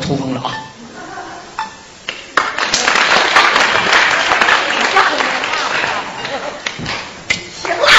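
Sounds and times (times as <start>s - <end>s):
speech: 0.1s - 0.7s
audience applause: 2.1s - 7.8s.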